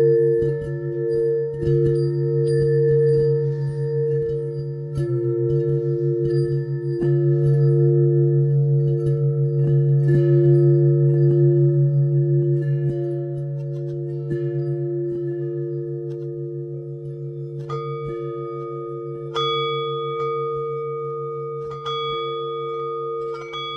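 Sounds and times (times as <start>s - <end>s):
bells in 10edo tuning: 0.0s - 23.7s.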